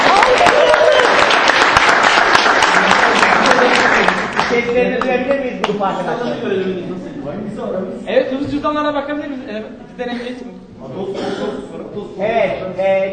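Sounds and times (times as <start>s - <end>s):
audience applause for the youngest group in a competition: 0.0s - 5.2s
speech: 4.8s - 13.1s.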